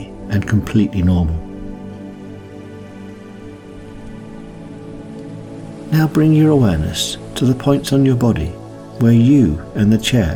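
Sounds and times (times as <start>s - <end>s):
speech: 0.3s - 1.4s, 5.9s - 10.3s
waves lapping: 1.6s - 8.9s.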